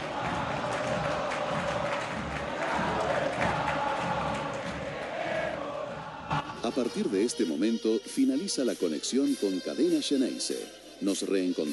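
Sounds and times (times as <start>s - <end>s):
huge stadium crowd cheering in celebration: 0.0s - 7.0s
speech: 6.7s - 11.7s.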